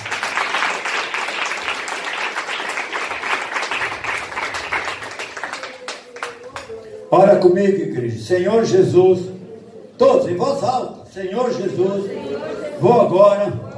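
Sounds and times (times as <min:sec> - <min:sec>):
audience applauding: 0:00.0 - 0:06.7
speech: 0:07.1 - 0:09.4, 0:10.0 - 0:13.6.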